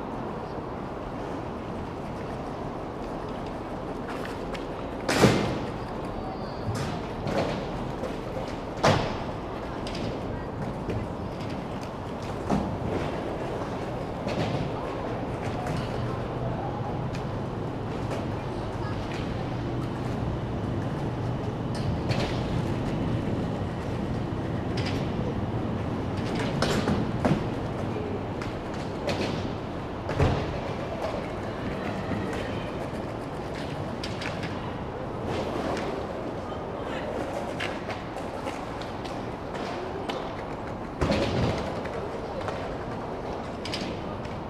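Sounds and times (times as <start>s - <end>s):
skateboards rolling at a skate practice area: 0.1s - 44.4s
faint voices: 5.7s - 44.4s.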